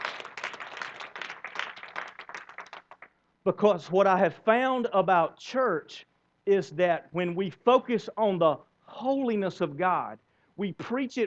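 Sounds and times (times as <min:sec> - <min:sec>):
audience clapping: 0:00.0 - 0:03.2
speech: 0:03.4 - 0:11.2.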